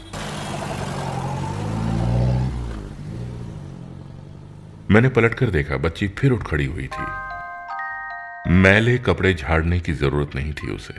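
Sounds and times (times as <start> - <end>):
taxi engine accelerating away: 0.0 - 6.3
speech: 4.9 - 7.3, 8.5 - 10.9.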